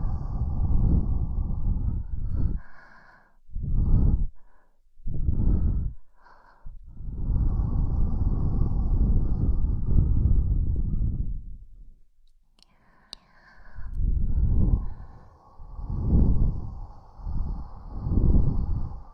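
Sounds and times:
soft gusting wind: 0:00.0 - 0:02.7, 0:03.5 - 0:04.4, 0:05.1 - 0:06.0, 0:06.7 - 0:11.7, 0:13.7 - 0:19.1
faint tick: 0:12.2 - 0:13.3.

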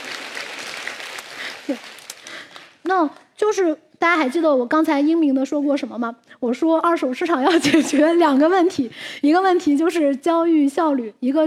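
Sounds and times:
audience applause: 0:00.0 - 0:02.8
speech: 0:01.7 - 0:02.0, 0:02.9 - 0:11.4.

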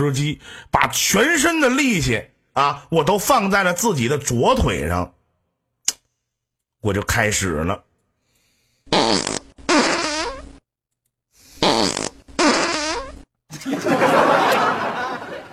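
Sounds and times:
speech: 0:00.0 - 0:05.2, 0:06.8 - 0:07.9, 0:08.9 - 0:09.4
loud buzzy fart: 0:08.9 - 0:10.6, 0:11.6 - 0:13.3
laughter: 0:13.5 - 0:15.5.

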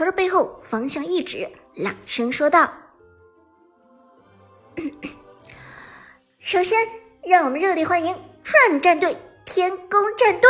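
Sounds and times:
speech: 0:00.0 - 0:02.8, 0:06.4 - 0:10.4
person clearing throat: 0:04.8 - 0:05.3.

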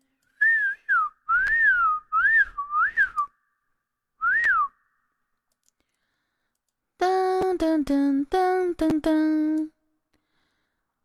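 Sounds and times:
person whistling without a tune: 0:00.4 - 0:03.4, 0:04.2 - 0:05.0
speech: 0:07.8 - 0:09.8.

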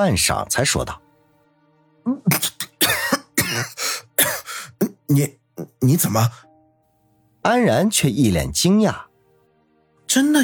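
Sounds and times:
speech: 0:00.0 - 0:01.0, 0:05.1 - 0:06.5, 0:07.4 - 0:09.1, 0:10.1 - 0:10.4
man coughing after choking on milk tea: 0:02.3 - 0:05.8.

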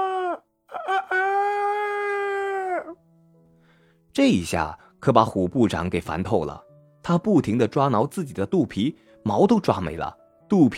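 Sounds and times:
rooster crowing: 0:00.0 - 0:03.0
speech: 0:04.2 - 0:10.7.

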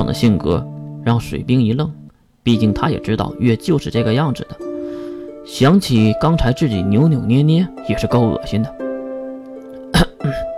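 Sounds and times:
speech: 0:00.0 - 0:04.6, 0:05.5 - 0:08.8
fake coughing: 0:09.9 - 0:10.5
throat clearing: 0:09.9 - 0:10.5.

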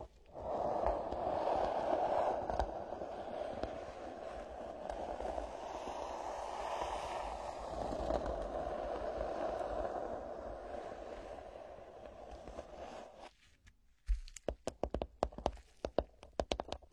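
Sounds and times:
ear scratching: 0:00.0 - 0:13.5
sharp clicks and taps: 0:14.1 - 0:16.9.

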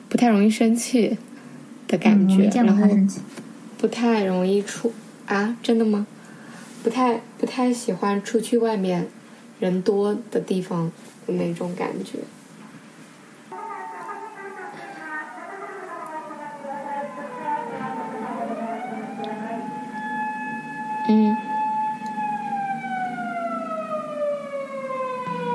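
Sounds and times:
speech: 0:00.2 - 0:01.3, 0:01.9 - 0:06.1, 0:06.8 - 0:12.4
ambulance siren passing by in Japan: 0:13.5 - 0:25.5.

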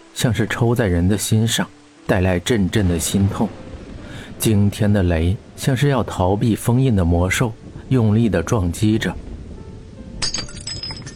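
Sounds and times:
speech: 0:00.2 - 0:03.6, 0:04.4 - 0:09.3
glass cup falling off a table and shattering on the floor: 0:10.2 - 0:11.1.

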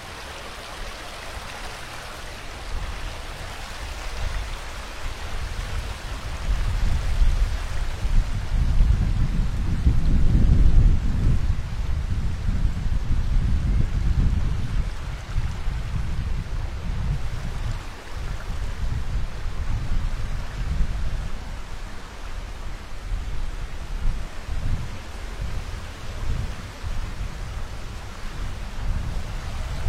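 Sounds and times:
water rushing along a forest path: 0:00.0 - 0:29.8
wind along a forest path: 0:00.0 - 0:29.8.

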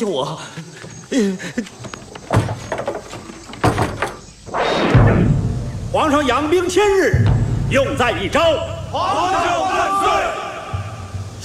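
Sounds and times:
speech: 0:00.0 - 0:02.9, 0:06.0 - 0:09.9
dull thumps and knocks: 0:00.8 - 0:05.8
door being shut: 0:01.7 - 0:05.8.

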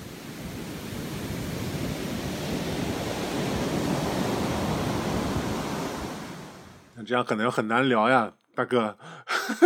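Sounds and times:
waves crashing on black sand beach: 0:00.0 - 0:06.9
speech: 0:07.1 - 0:09.6
laughter: 0:09.3 - 0:09.6.

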